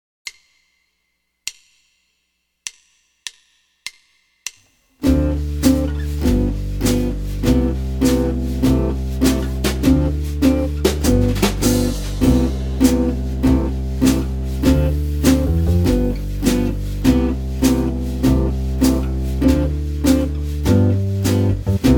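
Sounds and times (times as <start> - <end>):
jazz guitar playing a 2 5 1 progression in C major: 5.0 - 21.9.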